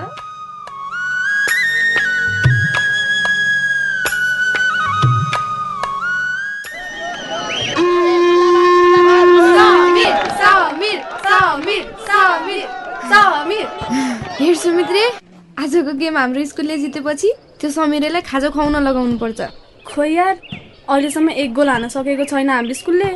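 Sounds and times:
whistles: 0.2 - 10.1
crowd chatter and shouting at a school football match: 6.7 - 15.2
speech: 16.2 - 23.1.

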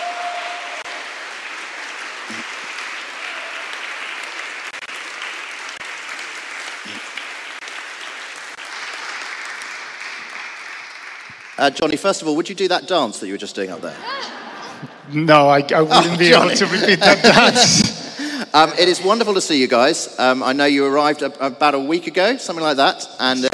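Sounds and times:
round of applause: 0.0 - 12.4
speech: 11.6 - 14.4, 15.1 - 17.8, 18.6 - 23.5
laughter: 13.8 - 15.1, 15.8 - 18.5.

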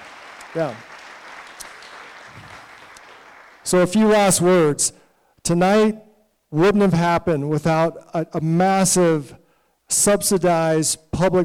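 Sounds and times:
audience applause: 0.0 - 3.7
speech: 0.5 - 0.9, 3.6 - 11.4.

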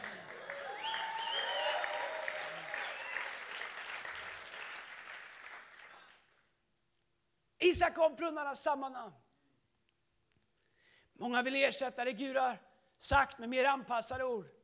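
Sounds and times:
audience applause: 0.0 - 6.4
voices cheering: 0.2 - 3.6
speech: 7.7 - 9.2, 11.2 - 14.6.

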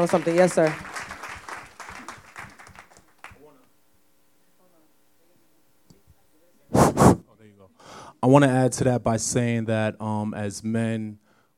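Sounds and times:
speech: 0.0 - 0.9, 8.2 - 11.2
audience clapping: 0.0 - 3.7.

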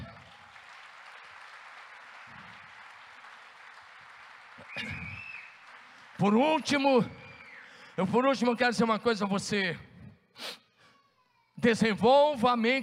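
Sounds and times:
audience applauding: 0.0 - 7.8
high whistle or cheer: 4.6 - 5.8, 6.5 - 7.9
speech: 4.7 - 5.3, 6.2 - 7.2, 8.0 - 10.6, 11.6 - 12.8.

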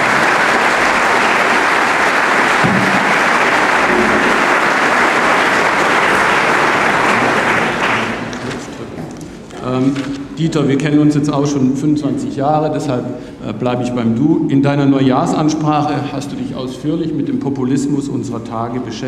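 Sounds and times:
audience applause: 0.0 - 8.8
speech: 9.7 - 19.0.

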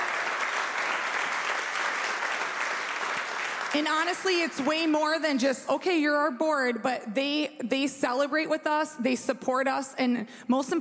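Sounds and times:
audience applauding: 0.0 - 4.9
speech: 3.7 - 10.7.

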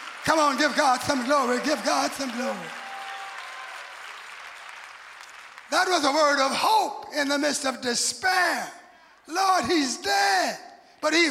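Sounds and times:
audience clapping hands: 0.0 - 7.1
speech: 0.2 - 2.8, 5.7 - 11.3.

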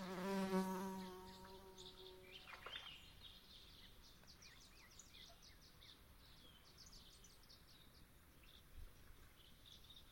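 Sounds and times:
loud insect-like buzz in a swamp at dusk: 0.0 - 2.6.

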